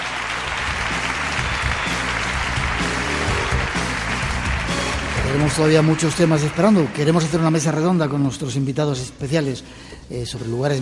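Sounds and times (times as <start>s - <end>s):
auditorium audience applause: 0.0s - 8.2s
speech: 5.4s - 10.7s.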